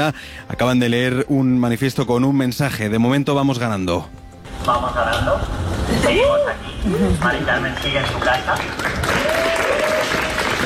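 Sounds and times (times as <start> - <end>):
speech: 0.0 - 9.2
crowd applauding outdoors at protest camp: 6.9 - 10.6.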